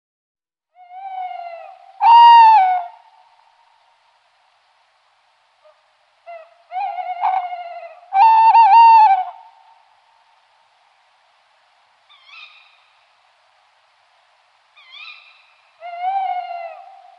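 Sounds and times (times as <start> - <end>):
tawny owl hooting: 0.7 - 3.2, 5.6 - 9.7, 12.1 - 12.9, 14.8 - 17.1.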